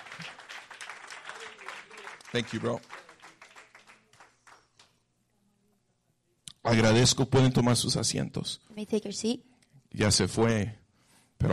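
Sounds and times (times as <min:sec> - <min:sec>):
audience applause: 0:00.0 - 0:04.8
speech: 0:02.3 - 0:02.9, 0:06.7 - 0:10.8.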